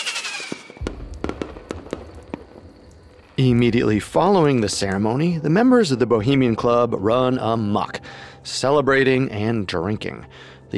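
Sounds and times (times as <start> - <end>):
fireworks exploding above the lake: 0.0 - 5.2
speech: 3.4 - 10.7.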